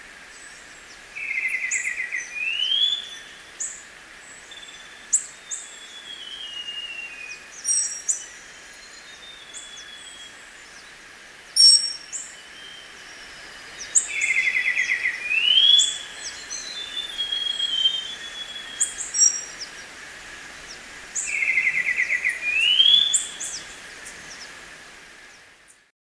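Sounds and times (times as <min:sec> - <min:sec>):
birds chipping: 0:00.4 - 0:24.6
black-winged saltator trilling: 0:04.5 - 0:10.3, 0:11.6 - 0:13.0, 0:13.7 - 0:19.9, 0:20.6 - 0:24.5.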